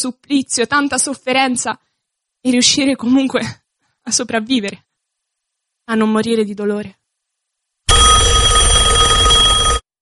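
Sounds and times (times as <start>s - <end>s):
speech: 0.0s - 4.9s, 5.9s - 7.0s
telephone ringing: 7.9s - 9.9s.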